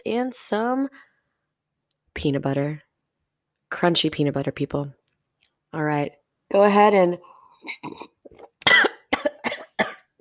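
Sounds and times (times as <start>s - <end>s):
speech: 0.0s - 1.1s, 2.2s - 2.8s, 3.7s - 5.0s, 5.7s - 8.4s
person coughing after choking on coffee: 7.7s - 10.1s.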